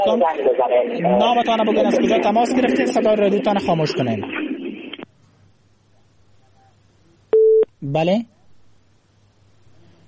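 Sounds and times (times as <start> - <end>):
speech: 0.0 - 4.4, 7.8 - 8.4
telephone tone on a radio call-in line: 7.4 - 7.7.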